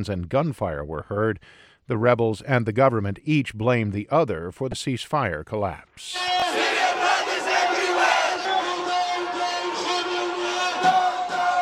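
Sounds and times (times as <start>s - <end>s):
speech: 0.0s - 6.4s
protest crowd chanting: 6.2s - 11.5s.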